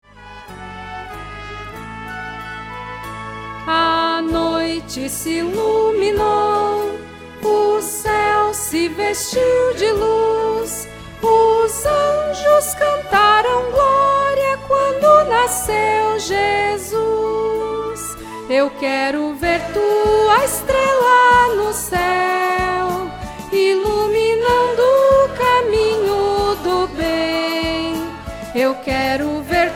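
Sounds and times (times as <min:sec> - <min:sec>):
soprano singing: 0:03.6 - 0:29.7.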